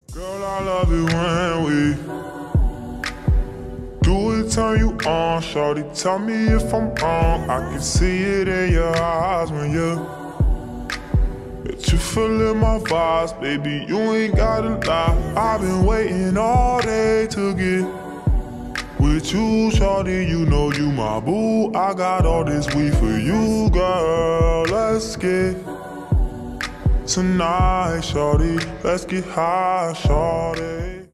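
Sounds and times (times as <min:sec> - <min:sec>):
slowed reverb music: 0:00.0 - 0:31.1.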